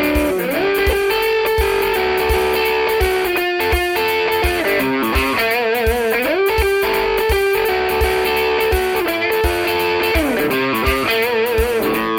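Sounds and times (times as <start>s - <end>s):
high-gain electric guitar on bridge and neck humbucker pickups: 0.0s - 12.1s.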